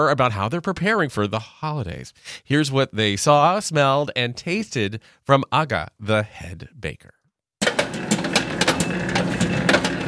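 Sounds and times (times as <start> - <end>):
speech: 0.0 - 7.2
bakery mixer spinning sufganiyot dough at a Jewish bakery in Monticello: 7.6 - 10.0
clanking knocks of bakery mixer: 7.6 - 10.0.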